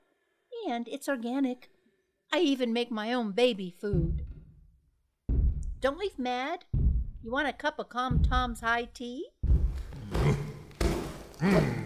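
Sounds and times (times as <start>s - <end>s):
speech: 0.7s - 4.3s, 5.8s - 9.3s, 11.4s - 11.8s
heavy stomping on a garden: 3.9s - 7.3s, 8.1s - 11.8s.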